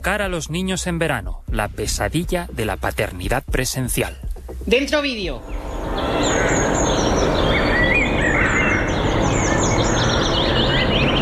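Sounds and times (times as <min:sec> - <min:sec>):
speech: 0:00.0 - 0:06.7
birds singing in a park in winter: 0:05.4 - 0:11.1.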